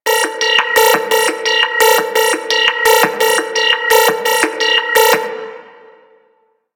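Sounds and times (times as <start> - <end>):
music loop: 0.0 - 6.2.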